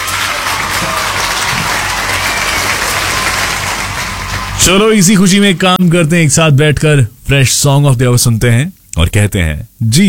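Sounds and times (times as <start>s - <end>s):
applause sound effect: 0.0s - 5.8s
speech: 4.6s - 10.0s.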